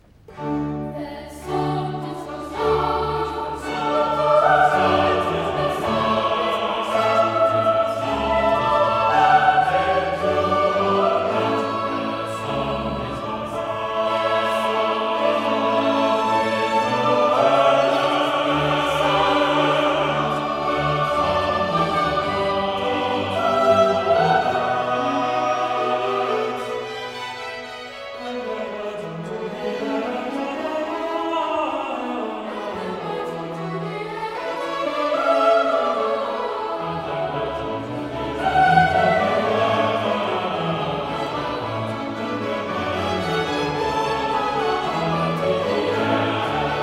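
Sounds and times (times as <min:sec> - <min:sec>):
chorus singing: 0:00.3 - 0:46.8.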